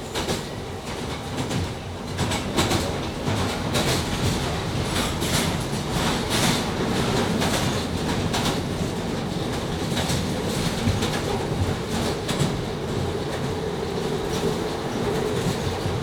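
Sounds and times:
London underground train interior during a ride: 0.0 - 16.0.

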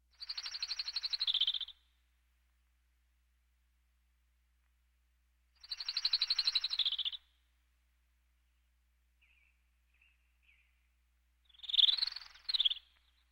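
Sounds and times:
birds: 0.1 - 1.9, 5.6 - 7.4, 8.4 - 13.2.

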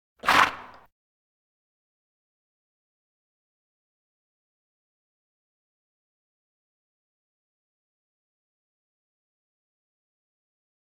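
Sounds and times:
farm animal snorts: 0.2 - 0.8.

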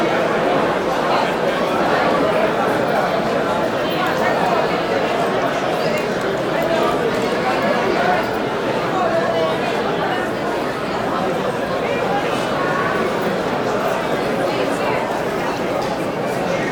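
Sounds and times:
large indoor crowd walla in a marketplace: 0.0 - 16.7.

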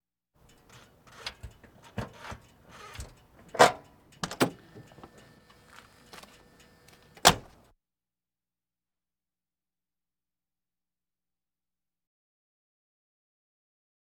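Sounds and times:
various automobiles: 0.4 - 7.7.

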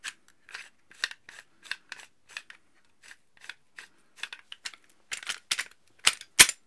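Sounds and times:
gun handling weapon foley: 5.1 - 6.6.

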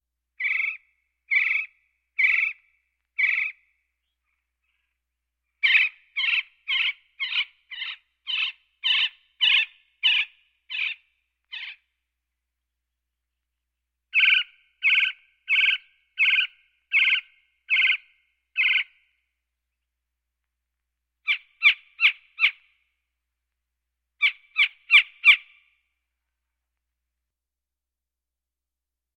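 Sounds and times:
birds: 0.4 - 12.0, 14.1 - 19.3, 21.2 - 22.9, 24.2 - 25.9.

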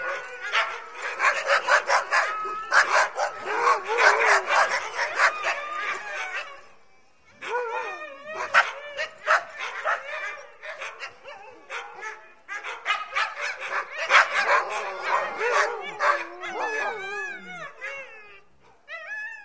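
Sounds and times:
Husky dog barking: 0.0 - 5.9, 8.4 - 17.0.

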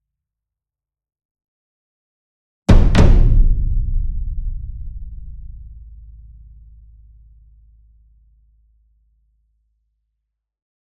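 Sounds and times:
ensemble concert bass drum, double: 2.7 - 7.0.

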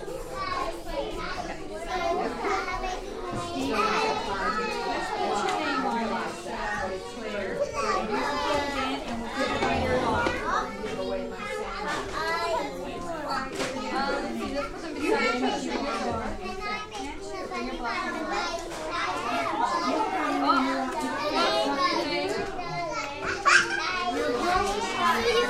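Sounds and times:
children playing with teachers at a nursery school: 0.0 - 25.4.

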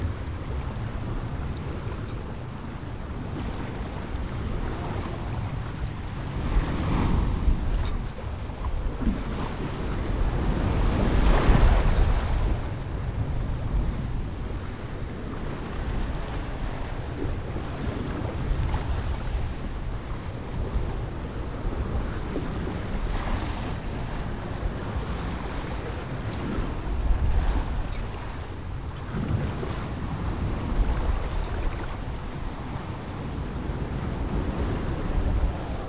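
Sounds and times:
sailboat general atmosphere: 0.0 - 35.8
waves around a sailboat: 0.0 - 35.8.

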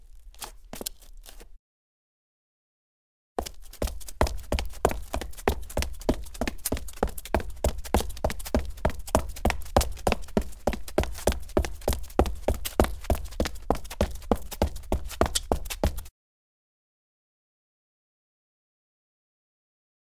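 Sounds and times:
footsteps on gritty cement: 3.4 - 16.1.

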